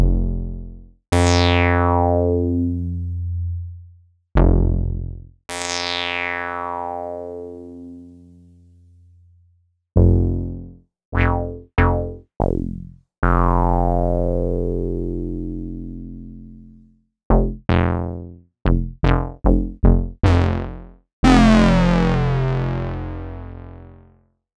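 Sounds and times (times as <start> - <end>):
ARP Odyssey synthesizer bass: 0.1 - 5.3, 10.4 - 16.0, 17.4 - 24.0.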